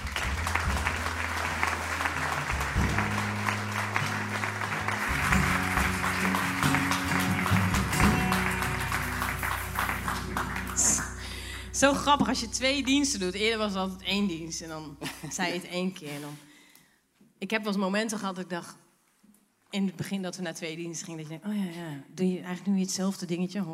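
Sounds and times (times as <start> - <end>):
crowd applauding: 0.0 - 13.1
low hum or tones: 7.6 - 15.0
speech: 11.8 - 16.5, 17.4 - 18.8, 19.7 - 23.7.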